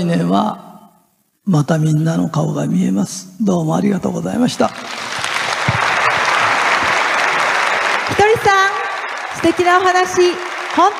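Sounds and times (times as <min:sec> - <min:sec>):
speech: 0:00.0 - 0:00.6, 0:01.4 - 0:05.0, 0:09.4 - 0:10.9
audience applause in a hall: 0:04.6 - 0:10.9.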